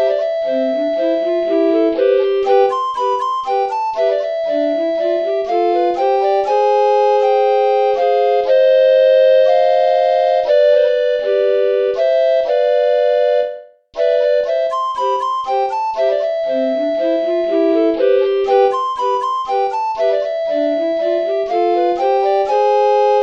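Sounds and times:
recorder trio playing: 0.2 - 23.2.

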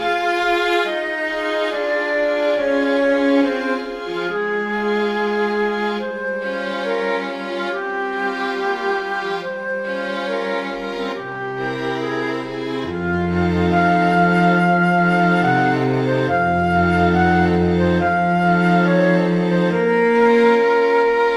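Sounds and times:
flute: 0.0 - 21.3
string instruments: 0.0 - 21.3.

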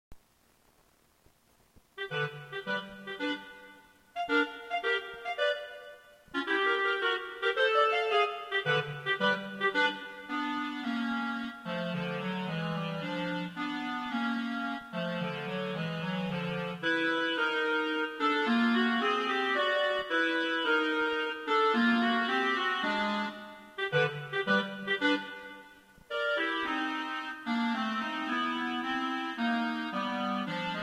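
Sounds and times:
clarinet: 2.0 - 30.8.

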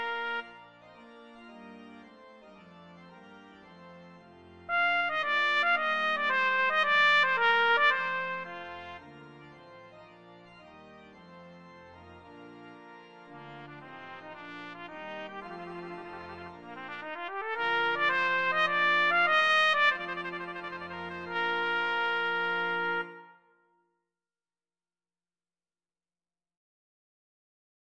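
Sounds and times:
trumpet piece: 0.0 - 0.9, 4.6 - 9.7, 13.3 - 23.8.

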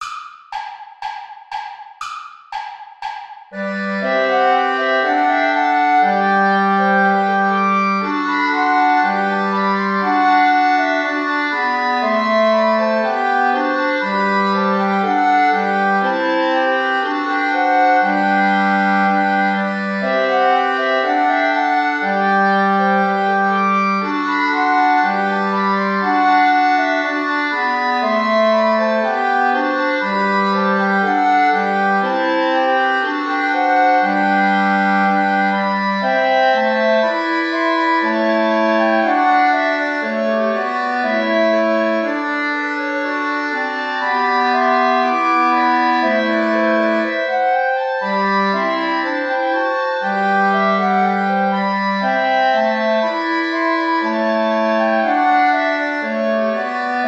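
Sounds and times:
play-along backing music without clarinet: 0.0 - 57.0.

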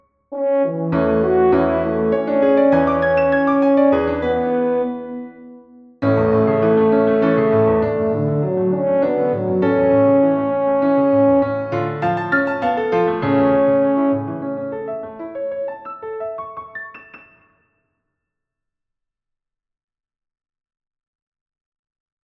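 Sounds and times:
horn and piano music: 0.0 - 17.4.

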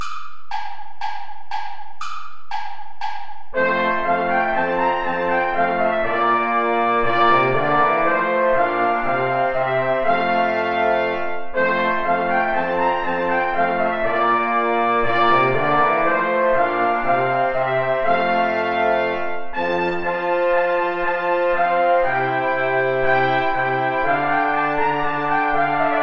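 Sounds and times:
play-along backing music without trombone: 0.0 - 26.0.

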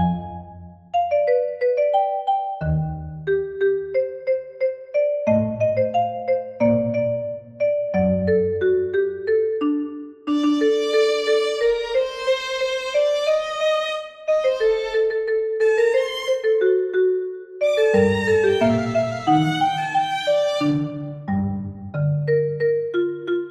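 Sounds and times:
marimba: 0.0 - 13.3, 14.2 - 23.4
strings: 10.3 - 16.6, 17.6 - 21.5.

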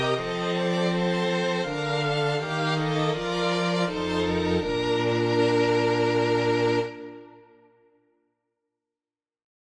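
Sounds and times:
minuet: 0.0 - 7.8.

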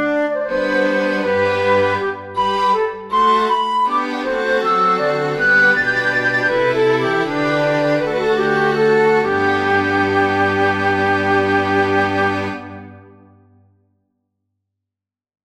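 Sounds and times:
sonata in a major key for flute and strings: 0.0 - 13.6.

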